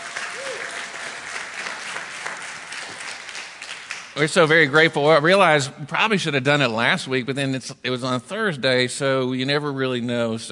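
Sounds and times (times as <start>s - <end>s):
audience applause: 0.0s - 4.3s
speech: 4.2s - 10.5s.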